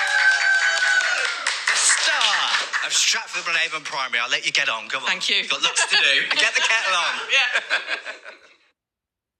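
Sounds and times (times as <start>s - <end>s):
applause for a primary school staff member: 0.0s - 4.0s
speech: 2.8s - 8.6s
laughter: 5.5s - 8.6s.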